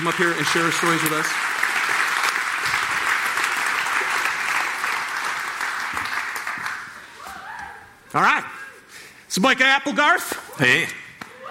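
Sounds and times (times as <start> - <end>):
speech: 0.0 - 1.6, 8.2 - 8.6, 9.3 - 11.0
audience round of applause: 0.0 - 7.2.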